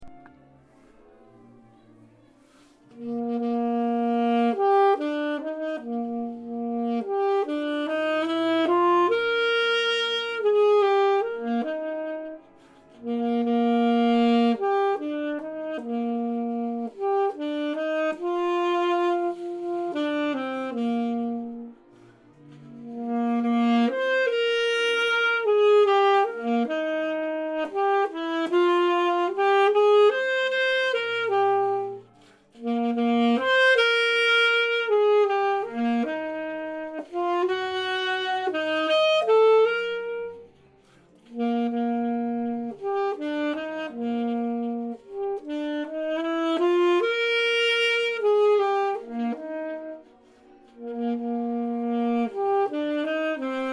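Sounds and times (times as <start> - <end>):
alto saxophone: 0.0 - 53.7.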